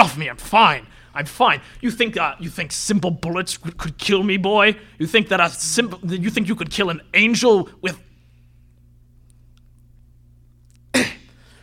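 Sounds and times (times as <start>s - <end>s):
faint low hum: 0.0s - 11.6s
speech: 0.1s - 8.1s
voice imitating coughing: 10.9s - 11.4s.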